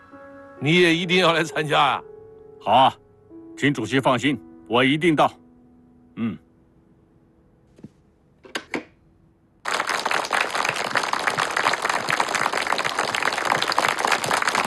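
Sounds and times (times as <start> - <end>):
speech: 0.6 - 3.0, 3.6 - 5.4, 6.2 - 6.4
applause: 9.6 - 14.6.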